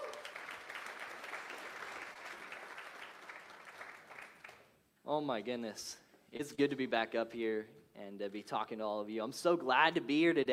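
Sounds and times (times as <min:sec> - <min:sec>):
audience applause: 0:00.0 - 0:04.6
speech: 0:05.1 - 0:10.5.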